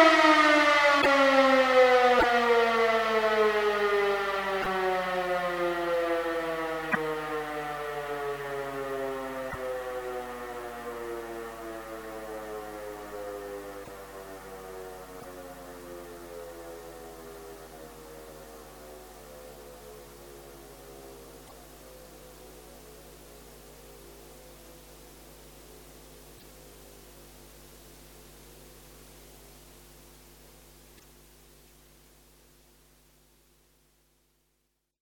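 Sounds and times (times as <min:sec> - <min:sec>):
siren all-clear signal: 0:00.0 - 0:34.1.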